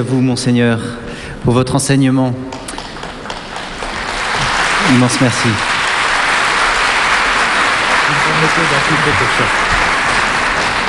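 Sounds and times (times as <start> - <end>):
speech: 0.0 - 2.6, 4.9 - 5.7, 8.4 - 9.8
audience applause: 2.6 - 10.8.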